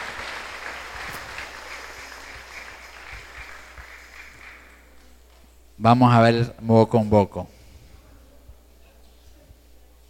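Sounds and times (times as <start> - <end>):
audience applause: 0.0 - 4.8
speech: 5.8 - 7.5.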